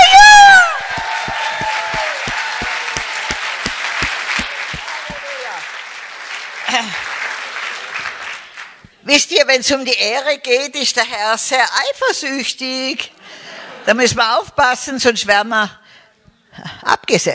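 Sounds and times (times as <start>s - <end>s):
audience clapping hands as offering: 0.2s - 9.0s
speech: 9.1s - 13.1s, 13.9s - 15.8s, 16.9s - 17.3s.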